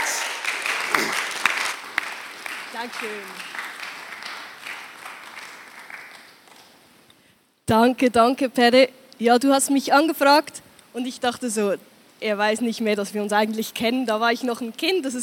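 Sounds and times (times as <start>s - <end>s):
audience applause: 0.0s - 6.8s
speech: 2.8s - 3.6s, 7.7s - 15.2s.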